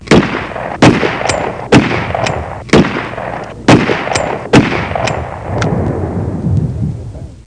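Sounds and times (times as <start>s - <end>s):
gunshot: 0.1s - 5.8s.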